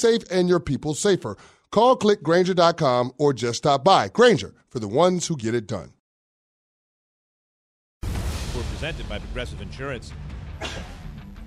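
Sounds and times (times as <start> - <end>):
speech: 0.0 - 6.0, 8.8 - 10.8
sharp loud sneeze: 10.6 - 11.0.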